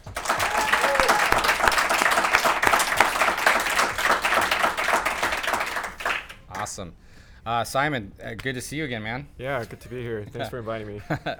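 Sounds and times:
audience applause welcoming a guest: 0.0 - 6.8
laughter: 0.0 - 6.8, 9.5 - 11.3
speech: 6.8 - 11.3.

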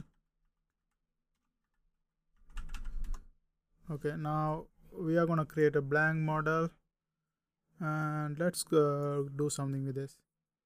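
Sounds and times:
computer keyboard typing as a command is entered: 2.4 - 3.3
speech: 3.9 - 6.8, 7.8 - 10.2.

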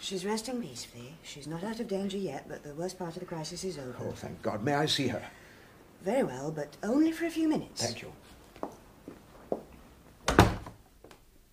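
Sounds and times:
speech: 0.0 - 5.4, 6.0 - 8.2
footsteps approaching: 8.3 - 10.2.

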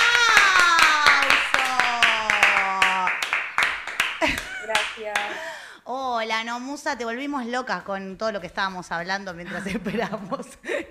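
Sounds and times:
applause: 0.0 - 5.4
laughter: 4.2 - 5.5
speech: 5.1 - 10.8.

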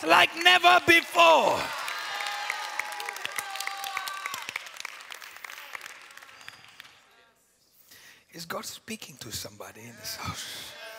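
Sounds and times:
speech: 0.0 - 1.8, 8.4 - 10.8
audience clapping: 0.0 - 7.2
audience cheering with shouts and whoops: 1.3 - 4.9.

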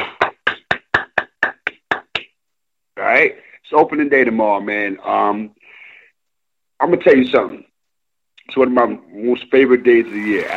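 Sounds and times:
hand clapping: 0.0 - 2.4
speech: 3.1 - 5.6, 6.8 - 7.7, 8.5 - 10.5.

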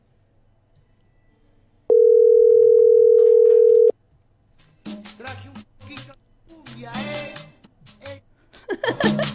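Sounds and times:
telephone call tone beep: 1.9 - 3.9
laughter: 8.5 - 9.3.

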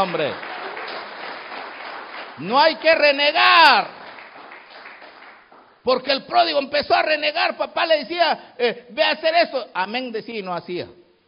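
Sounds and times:
speech: 0.0 - 0.6, 2.4 - 4.0, 5.8 - 11.0
hands clapping: 0.0 - 5.8.

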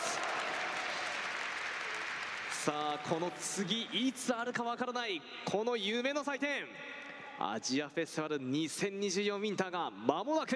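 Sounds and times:
audience applause: 0.0 - 4.2
speech: 2.6 - 10.5.

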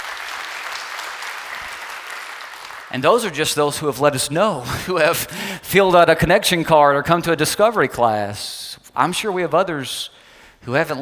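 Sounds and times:
audience applause: 0.0 - 3.1
speech: 2.9 - 10.9.

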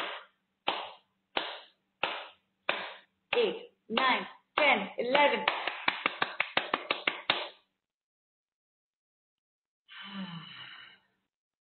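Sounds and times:
hands clapping on top of head: 0.0 - 7.6
speech: 3.4 - 5.7.

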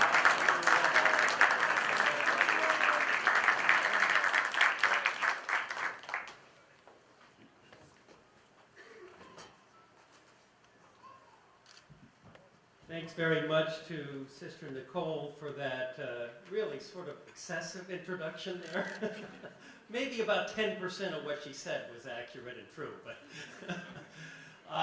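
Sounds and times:
crowd applauding loudly, welcoming a speaker: 0.0 - 6.5
speech: 13.1 - 23.9
laughter: 18.7 - 19.6, 23.3 - 24.2.

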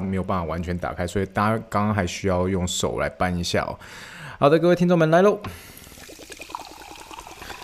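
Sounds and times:
speech: 0.1 - 5.7
fizzy hiss of sparkling water: 5.5 - 7.6
sparkling water pouring from a bottle: 5.7 - 7.6.

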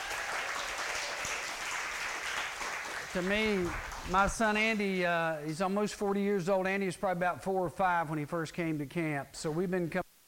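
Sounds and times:
audience round of applause: 0.0 - 4.8
speech: 3.1 - 10.2.

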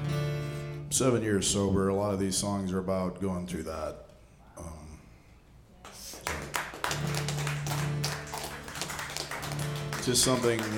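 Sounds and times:
speech: 0.9 - 4.8, 10.1 - 10.7
audience applause: 6.0 - 10.7.

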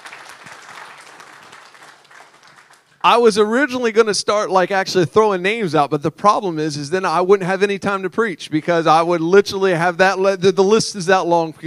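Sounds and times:
audience clapping: 0.0 - 3.1
speech: 3.0 - 11.6.

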